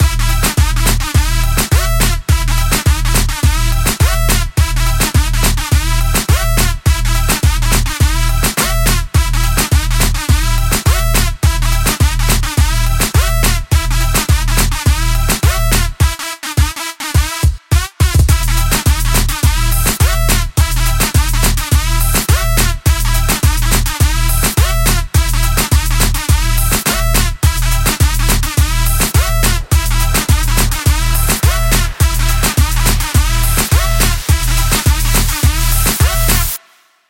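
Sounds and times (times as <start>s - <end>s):
full drum kit loop: 0.0s - 36.6s.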